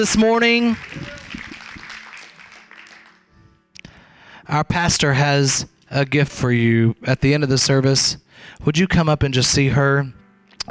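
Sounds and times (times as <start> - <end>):
speech: 0.0 - 1.1, 4.5 - 10.6
audience clapping: 0.0 - 3.4.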